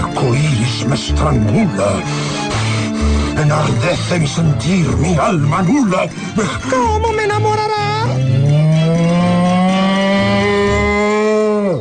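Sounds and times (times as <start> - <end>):
speech: 0.8 - 8.3
bull mooing: 8.1 - 11.7.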